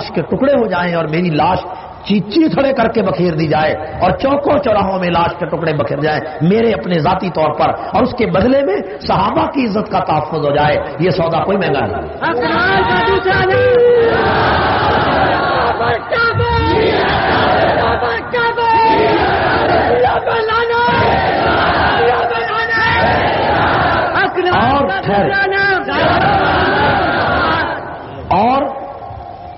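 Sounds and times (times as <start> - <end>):
speech: 0.1 - 15.0, 24.3 - 27.0, 28.3 - 28.8
large crowd chanting slogans: 13.6 - 24.2, 25.8 - 28.2.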